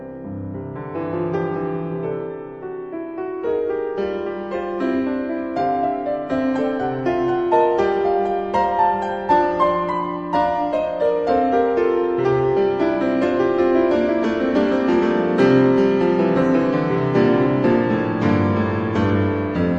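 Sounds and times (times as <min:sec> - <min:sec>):
piano version of a fugue in F sharp major: 0:00.0 - 0:19.7.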